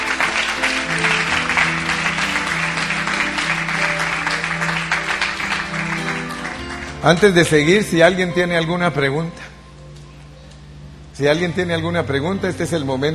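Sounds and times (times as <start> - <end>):
audience clapping: 0.0 - 7.9
speech: 7.0 - 9.4, 11.2 - 13.1.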